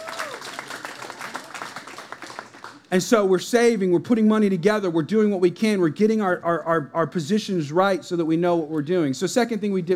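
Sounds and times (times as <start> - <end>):
audience clapping hands: 0.0 - 2.9
speech: 2.9 - 9.9.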